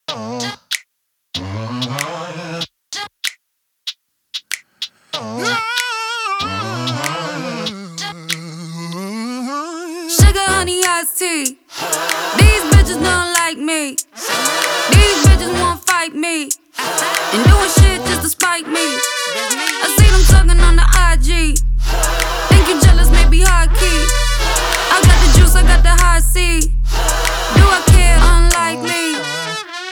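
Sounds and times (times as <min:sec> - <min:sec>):
hip hop music: 0:10.2 - 0:11.0, 0:11.8 - 0:16.0, 0:16.8 - 0:29.9.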